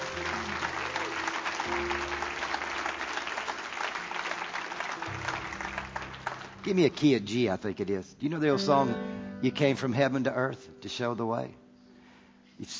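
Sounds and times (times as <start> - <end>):
audience applause: 0.0 - 7.1
speech: 6.6 - 11.6, 12.6 - 12.7.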